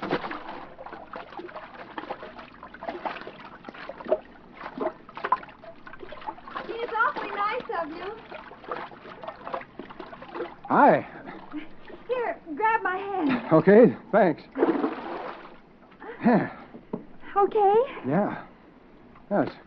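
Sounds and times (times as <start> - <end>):
person swimming and splashing through water: 0.0 - 12.1, 14.6 - 15.6
speech: 10.7 - 11.1, 13.5 - 14.6, 16.2 - 16.6, 17.6 - 18.4, 19.3 - 19.6.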